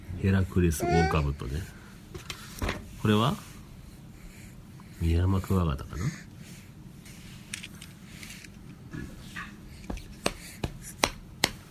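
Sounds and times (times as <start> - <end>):
speech: 0.2 - 2.3, 3.0 - 3.5, 5.0 - 6.3
hand patting a knee: 9.9 - 11.6.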